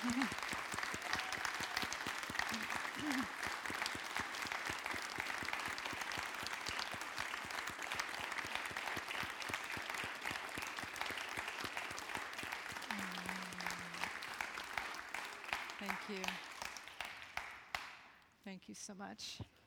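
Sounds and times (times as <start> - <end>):
speech: 0.0 - 0.6, 18.7 - 19.5
shouts and whoops from the crowd: 0.0 - 3.3
standing audience clapping: 0.0 - 18.3.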